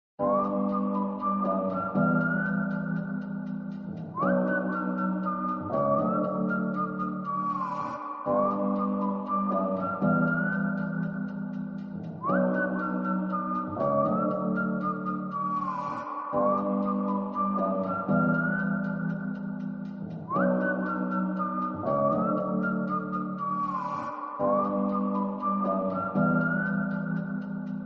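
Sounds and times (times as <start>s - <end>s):
whistle ringtone: 0.2s - 27.8s.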